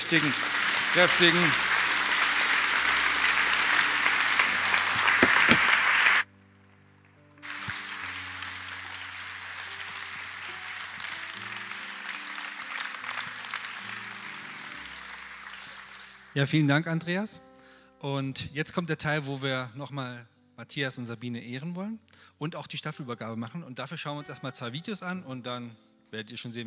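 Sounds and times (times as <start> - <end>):
crowd applause: 0.0 - 6.3, 7.2 - 16.5
speech: 0.1 - 1.7, 16.4 - 26.6.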